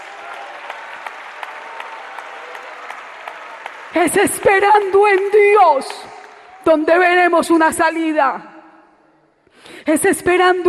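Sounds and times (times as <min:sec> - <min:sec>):
audience applause: 0:00.0 - 0:06.7
speech: 0:04.0 - 0:08.5, 0:09.8 - 0:10.6.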